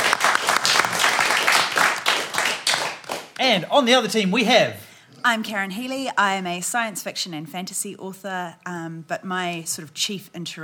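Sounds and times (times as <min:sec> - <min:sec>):
audience applause: 0:00.0 - 0:03.4
speech: 0:03.4 - 0:10.6.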